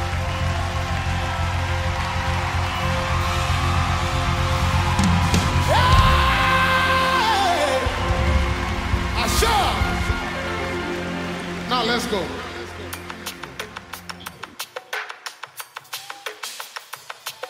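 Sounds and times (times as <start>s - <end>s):
audience clapping hands: 0.0s - 14.7s
speech: 12.1s - 12.4s.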